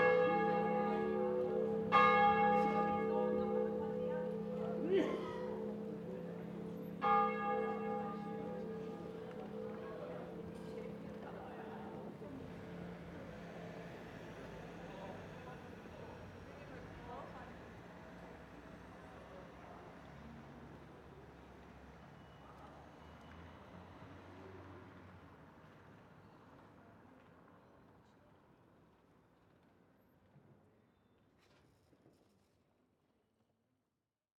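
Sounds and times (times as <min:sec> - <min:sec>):
bells: 0:00.0 - 0:12.8.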